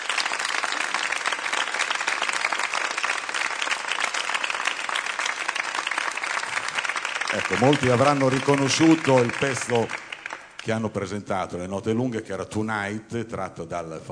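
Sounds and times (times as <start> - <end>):
audience applause: 0.0 - 10.8
speech: 7.3 - 10.0, 10.6 - 14.1.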